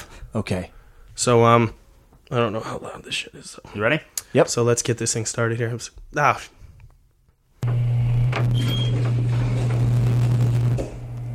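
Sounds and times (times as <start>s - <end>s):
speech: 0.4s - 6.6s
grinding rumble: 7.6s - 11.3s
loud low mechanical hum of a stuck elevator: 7.6s - 11.3s.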